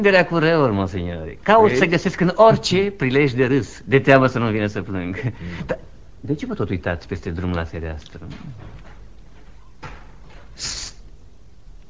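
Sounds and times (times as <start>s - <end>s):
speech: 0.0s - 8.9s, 10.6s - 10.9s
balcony door opening: 8.2s - 10.6s.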